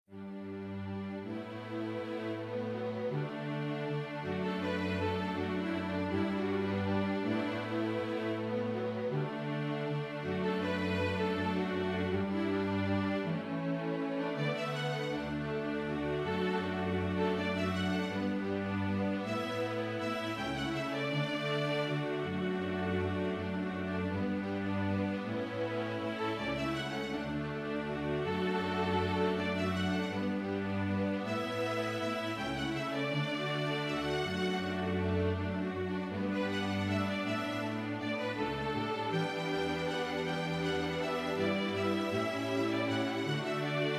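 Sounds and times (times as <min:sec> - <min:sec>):
string quartet: 0:00.0 - 0:43.9.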